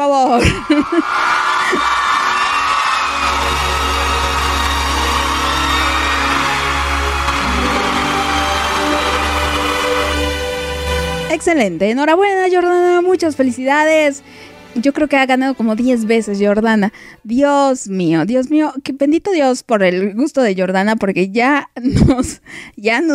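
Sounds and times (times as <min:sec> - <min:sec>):
speech: 0:00.1 - 0:02.0, 0:11.4 - 0:23.1
laughter: 0:00.3 - 0:02.4, 0:15.6 - 0:16.6
applause and cheering: 0:00.4 - 0:11.8.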